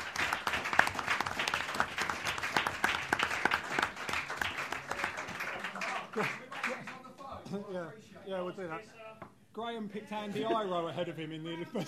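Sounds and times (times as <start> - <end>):
small group clapping: 0.0 - 7.3
speech: 6.2 - 6.4, 7.5 - 11.8.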